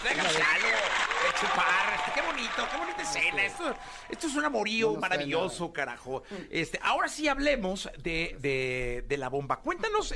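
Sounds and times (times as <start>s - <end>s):
applause: 0.0s - 4.6s
excited voices whooping and cheering: 0.6s - 4.8s
speech: 2.4s - 10.1s.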